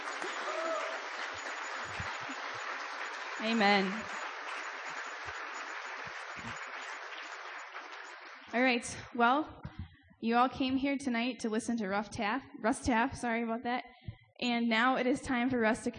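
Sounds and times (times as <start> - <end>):
audience applause: 0.0 - 8.6
speech: 3.4 - 4.2, 8.5 - 9.6, 10.2 - 15.9.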